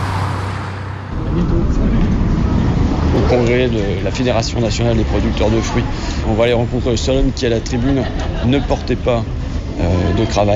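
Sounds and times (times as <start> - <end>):
car driving off fast: 0.0 - 4.0
speech: 3.3 - 10.5
laughter: 7.4 - 10.5.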